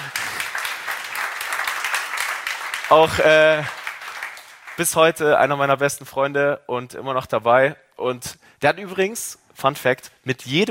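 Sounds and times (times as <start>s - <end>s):
audience applause for a colleague at a gathering: 0.0s - 5.2s
speech: 2.9s - 3.8s, 4.8s - 10.6s.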